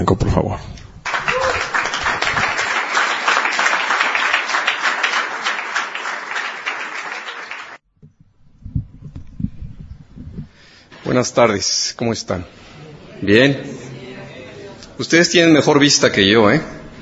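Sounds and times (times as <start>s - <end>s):
speech: 0.0s - 0.8s, 11.2s - 12.6s, 13.2s - 13.8s, 15.0s - 16.8s
welcome applause: 1.1s - 7.8s.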